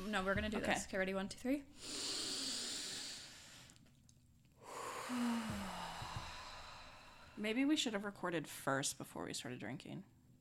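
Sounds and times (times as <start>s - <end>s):
speech: 0.1s - 2.3s, 7.4s - 10.2s
group taking a deep breath in: 1.8s - 3.8s, 4.6s - 7.4s.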